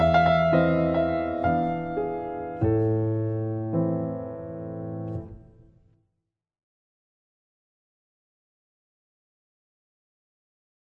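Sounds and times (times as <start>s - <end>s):
waltz in A minor on piano: 0.0s - 5.9s.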